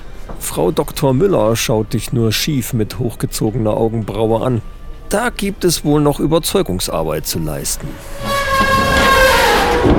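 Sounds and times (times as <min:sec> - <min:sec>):
speech: 0:00.4 - 0:08.3
screeching elevator door closing: 0:07.9 - 0:09.9.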